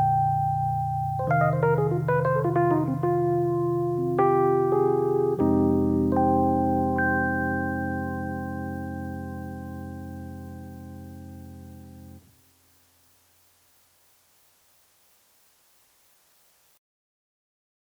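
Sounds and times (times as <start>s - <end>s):
electric piano, dry and wet: 0.0s - 12.3s.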